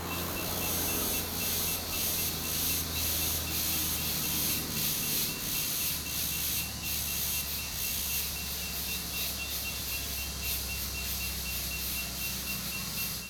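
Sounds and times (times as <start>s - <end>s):
many cicadas in a dense morning chorus in a rural community: 0.0s - 13.2s.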